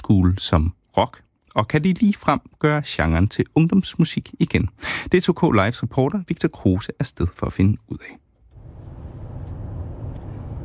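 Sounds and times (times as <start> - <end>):
speech: 0.1 - 8.2
moving car engine and road rumble on the road from DR-byen toward Kirke Hyllinge: 8.4 - 10.6.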